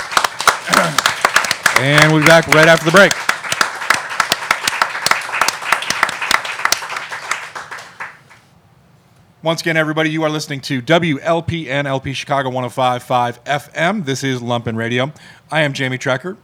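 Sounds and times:
crowd clapping: 0.0s - 8.5s
speech: 1.8s - 3.3s, 9.4s - 16.4s.

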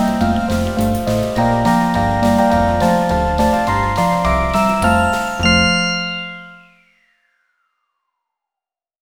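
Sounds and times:
synth Christmas music: 0.0s - 7.0s.

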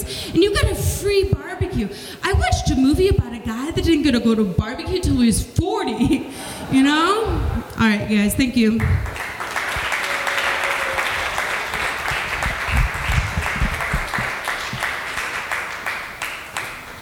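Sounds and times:
speech: 0.3s - 9.2s
audience applause: 8.8s - 16.9s.

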